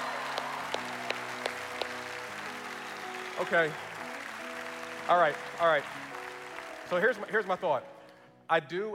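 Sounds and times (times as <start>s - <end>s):
audience applause: 0.0s - 7.6s
speech: 3.4s - 3.9s, 5.1s - 6.2s, 6.9s - 8.9s.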